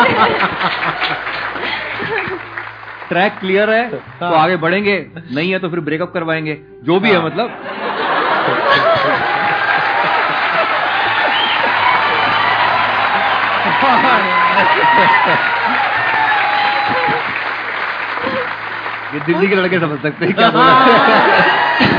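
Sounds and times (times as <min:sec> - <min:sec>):
laughter: 0:00.0 - 0:02.6, 0:07.1 - 0:21.9
audience clapping and cheering: 0:00.0 - 0:04.9, 0:07.6 - 0:21.9
speech: 0:03.1 - 0:09.4, 0:13.9 - 0:15.6, 0:19.1 - 0:21.9.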